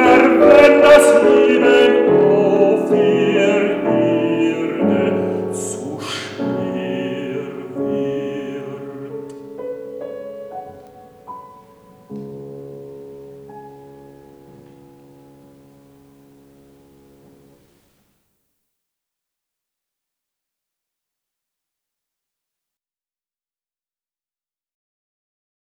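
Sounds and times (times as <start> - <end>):
baritone singing a Venetian song: 0.0 - 13.0
piano accompaniment: 0.0 - 18.0.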